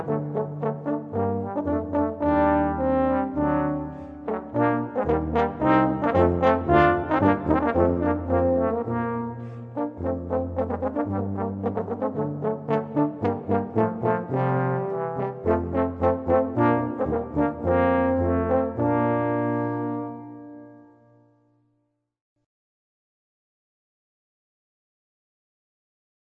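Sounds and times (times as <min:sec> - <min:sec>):
imperial brass music: 0:00.0 - 0:21.0.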